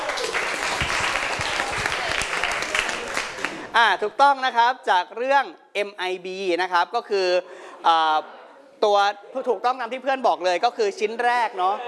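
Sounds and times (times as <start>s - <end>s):
applause for a correct answer: 0.0s - 3.7s
speech: 3.8s - 11.8s.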